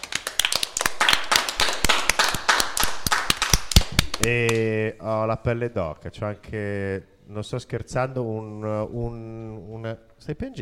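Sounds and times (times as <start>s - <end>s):
applause: 0.0s - 4.6s
speech: 4.2s - 10.6s.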